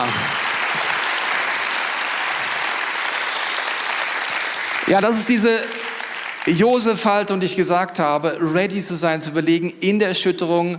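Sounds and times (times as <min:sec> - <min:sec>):
applause: 0:00.0 - 0:07.4
speech: 0:04.9 - 0:05.8, 0:06.4 - 0:10.7.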